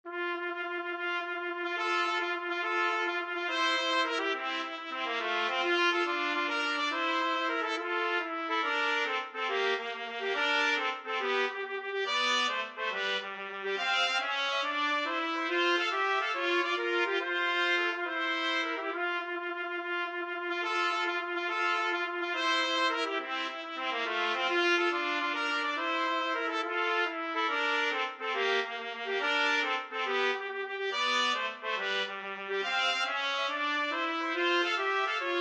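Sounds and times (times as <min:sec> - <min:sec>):
trumpet duet: 0:00.1 - 0:35.3.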